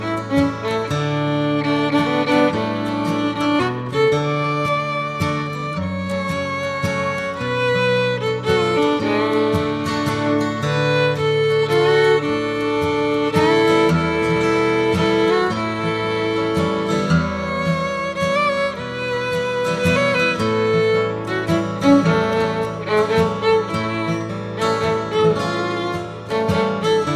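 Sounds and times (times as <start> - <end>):
fiddle playing: 0.0 - 27.1.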